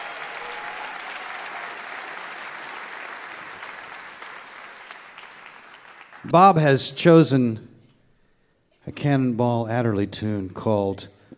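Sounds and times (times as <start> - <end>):
audience applause welcoming a piano player at a live music show: 0.0 - 6.4
speech: 6.2 - 7.7, 9.0 - 11.2.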